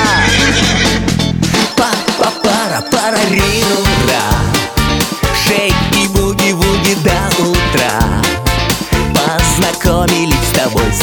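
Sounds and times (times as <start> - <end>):
horse neighing: 0.0 - 1.2
loud steady dance music: 0.0 - 11.0.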